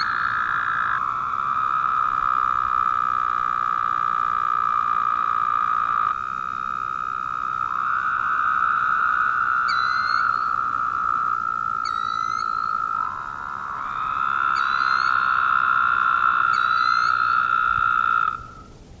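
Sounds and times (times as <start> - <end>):
Woodhouse's toad chorus of buzzy trills: 0.0 - 18.9.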